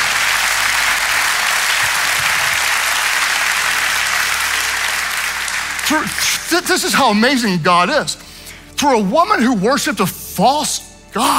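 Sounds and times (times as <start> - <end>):
audience applauding: 0.0 - 7.0
speech: 5.9 - 11.3.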